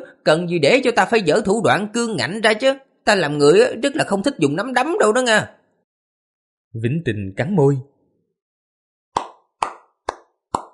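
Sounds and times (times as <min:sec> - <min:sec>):
speech: 0:00.2 - 0:05.6, 0:06.7 - 0:07.9
light hand clapping: 0:09.2 - 0:10.7.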